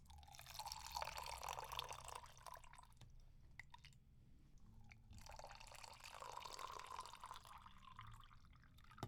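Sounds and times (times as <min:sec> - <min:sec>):
water pouring into a container: 0:00.1 - 0:02.9, 0:05.2 - 0:09.0.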